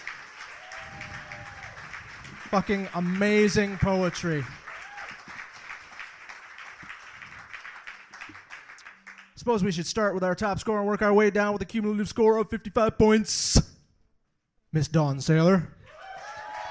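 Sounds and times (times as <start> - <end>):
crowd round of applause: 0.0 - 9.4, 15.9 - 16.6
speech: 2.5 - 4.6, 9.5 - 13.7, 14.8 - 15.8.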